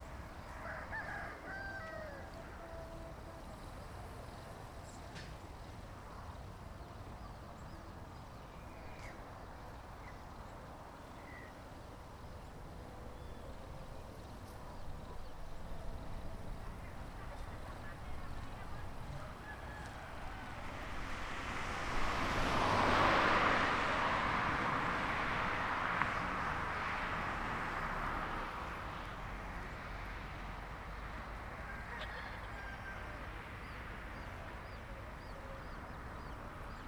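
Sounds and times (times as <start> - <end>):
rooster: 0.4 - 3.6, 17.1 - 20.8, 31.5 - 35.8
car passing on a road: 11.9 - 36.8.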